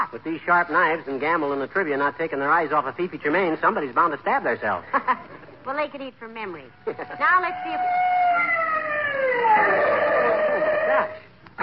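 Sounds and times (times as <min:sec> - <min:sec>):
speech: 0:00.1 - 0:08.6
ambulance siren approaching: 0:06.8 - 0:11.2.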